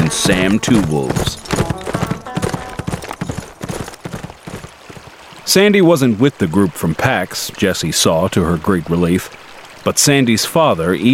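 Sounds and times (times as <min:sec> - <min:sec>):
horse hooves galloping: 0:00.0 - 0:05.6
speech: 0:00.1 - 0:01.4, 0:05.5 - 0:11.1.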